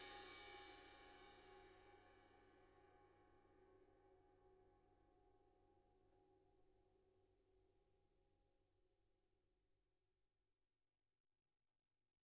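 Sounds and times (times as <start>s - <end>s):
crash cymbal: 0.0s - 2.6s.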